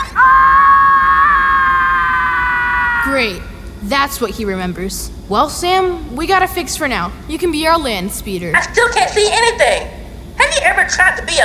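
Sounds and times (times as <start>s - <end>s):
high-pitched scream like a wailing baby: 0.0s - 3.2s
speech: 3.0s - 11.4s.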